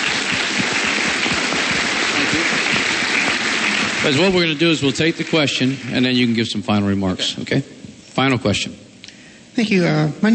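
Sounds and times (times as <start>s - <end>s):
audience applause: 0.0s - 6.5s
speech: 4.0s - 8.8s, 9.6s - 10.3s.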